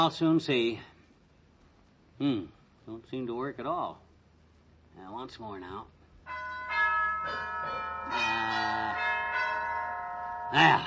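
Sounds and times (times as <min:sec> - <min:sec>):
speech: 0:00.0 - 0:00.9, 0:02.2 - 0:04.0, 0:05.0 - 0:06.5, 0:10.5 - 0:10.8
doorbell gong box ringing: 0:06.3 - 0:10.8.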